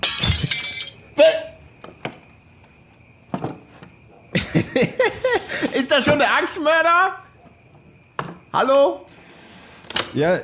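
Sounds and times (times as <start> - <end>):
falling glass fragments clinking: 0.0 - 1.1
window glass smashed in: 0.0 - 1.1
laughter: 4.4 - 5.9
speech: 4.6 - 7.2, 8.5 - 9.1, 10.2 - 10.4.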